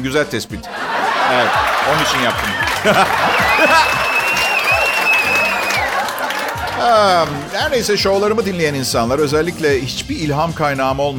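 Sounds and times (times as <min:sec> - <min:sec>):
speech: 0:00.0 - 0:04.1, 0:06.8 - 0:11.1
laughter: 0:00.6 - 0:08.2
crowd cheers and shouting voices: 0:00.7 - 0:07.8
audience applause: 0:00.8 - 0:07.8
sustained high whistle: 0:02.0 - 0:06.1.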